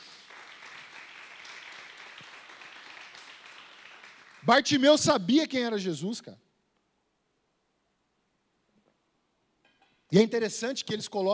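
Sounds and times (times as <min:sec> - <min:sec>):
audience applause: 0:00.0 - 0:04.8
speech: 0:04.4 - 0:06.4, 0:10.1 - 0:11.3.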